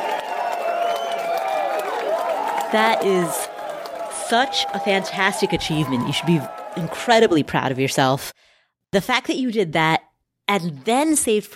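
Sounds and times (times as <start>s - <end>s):
studio audience applause and cheering: 0.0s - 7.9s
speech: 2.7s - 3.5s, 4.3s - 8.3s, 8.9s - 11.5s.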